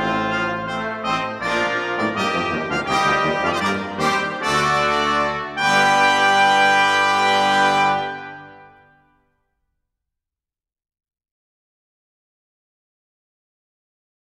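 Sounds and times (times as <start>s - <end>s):
intrada piece: 0.0s - 8.5s.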